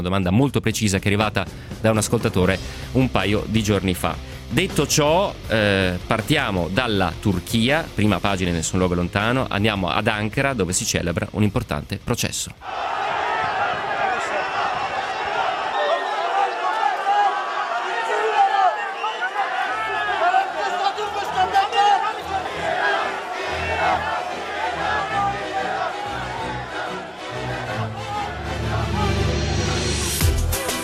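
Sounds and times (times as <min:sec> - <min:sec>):
speech: 0:00.0 - 0:13.2
supporters of President Erdogan jeering: 0:12.6 - 0:30.8.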